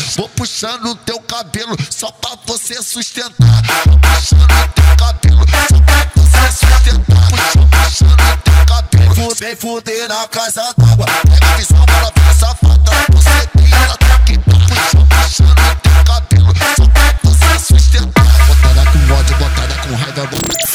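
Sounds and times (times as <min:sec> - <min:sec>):
mega funk bass: 0:03.4 - 0:09.2, 0:10.8 - 0:19.8.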